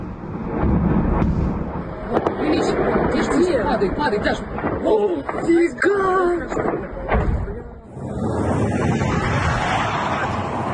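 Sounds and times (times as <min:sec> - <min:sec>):
fighter jet flying past overhead: 0:00.0 - 0:04.8, 0:07.8 - 0:10.7
speech: 0:03.4 - 0:07.0.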